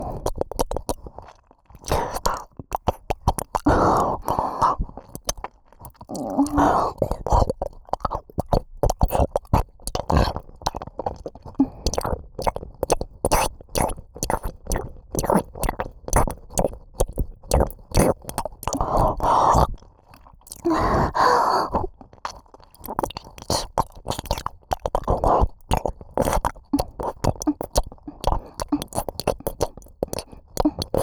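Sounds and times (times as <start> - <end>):
ear licking ASMR in the right ear: 0.0 - 31.0.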